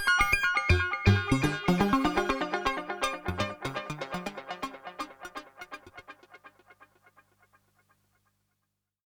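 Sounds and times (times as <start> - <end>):
modular synthesizer arpeggio burst: 0.0 - 6.4.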